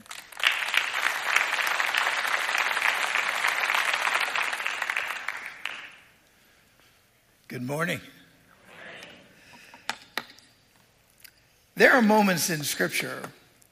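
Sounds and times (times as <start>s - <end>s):
congregation applauding as a bishop comes up to speak: 0.0s - 6.2s
speech: 7.5s - 8.2s, 11.8s - 13.4s.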